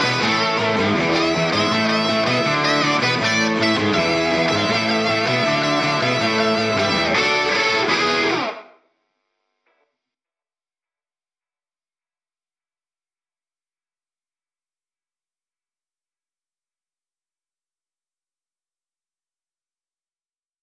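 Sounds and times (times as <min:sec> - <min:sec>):
guitars playing: 0:00.0 - 0:08.8.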